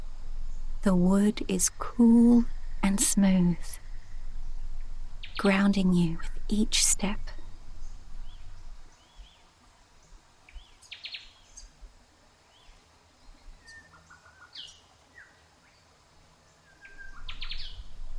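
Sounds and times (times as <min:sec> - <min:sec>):
speech: 0:00.8 - 0:03.8, 0:05.4 - 0:07.3
native birds singing: 0:03.4 - 0:11.8, 0:12.5 - 0:15.9, 0:16.5 - 0:18.0.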